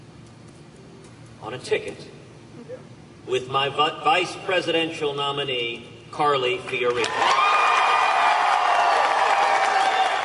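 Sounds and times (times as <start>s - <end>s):
speech: 1.4s - 7.2s
crowd applause and cheering: 6.9s - 10.2s.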